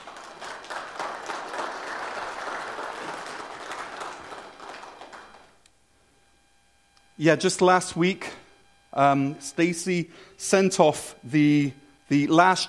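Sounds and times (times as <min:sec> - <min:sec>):
audience applause: 0:00.0 - 0:05.6
speech: 0:07.2 - 0:08.4, 0:09.0 - 0:12.6.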